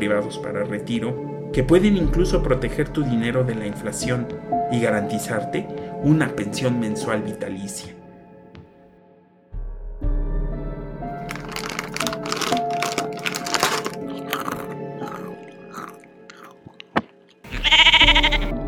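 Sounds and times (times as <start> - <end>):
speech: 0.0 - 8.0
crunching and chewing: 11.2 - 18.4
sheep bleating: 17.5 - 18.5.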